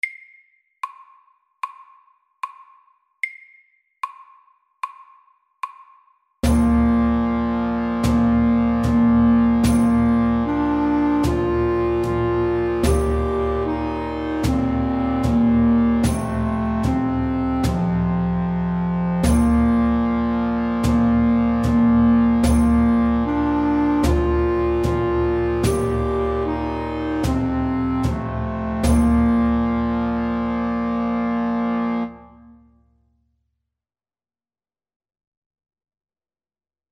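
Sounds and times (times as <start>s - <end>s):
slow English melody: 6.4s - 32.8s.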